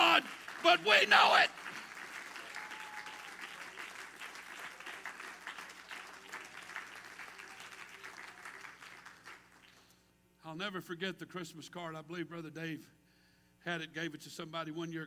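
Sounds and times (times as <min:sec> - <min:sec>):
hand clapping: 0:00.0 - 0:09.9
speech: 0:00.2 - 0:01.6, 0:10.5 - 0:13.0, 0:13.6 - 0:15.0.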